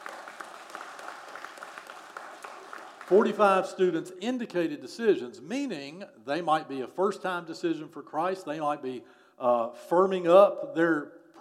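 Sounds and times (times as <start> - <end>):
audience clapping: 0.0 - 3.6
speech: 3.1 - 11.3.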